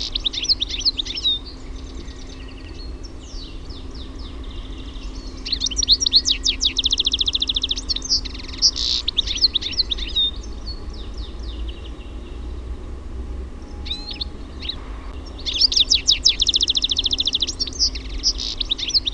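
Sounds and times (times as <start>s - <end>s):
European goldfinch twittering song with buzzy trills: 0.0s - 12.9s, 13.5s - 19.1s.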